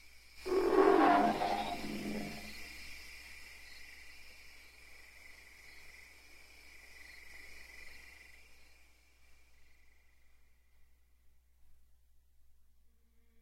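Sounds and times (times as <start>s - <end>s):
ape letting out a low rough growl: 0.5s - 2.5s.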